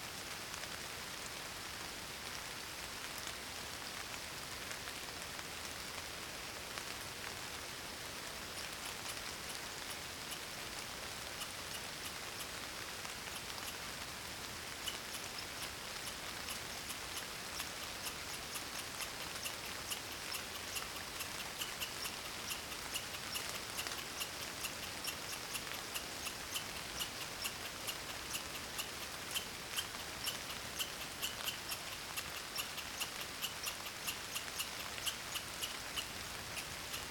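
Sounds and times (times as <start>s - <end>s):
rain shower in the wilderness: 0.0s - 37.1s.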